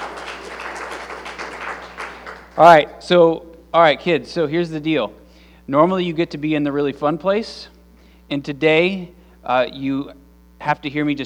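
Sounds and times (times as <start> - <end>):
crowd clapping to welcome children: 0.0 - 2.9
speech: 2.6 - 7.7, 8.3 - 11.2.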